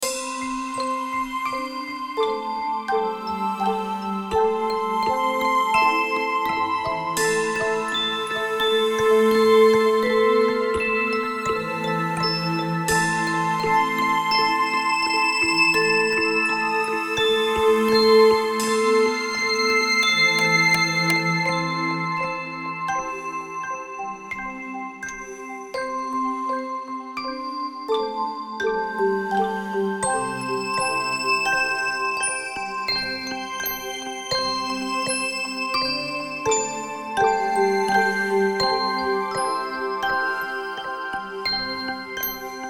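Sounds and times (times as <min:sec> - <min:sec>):
sparkling bells: 0:00.0 - 0:42.6.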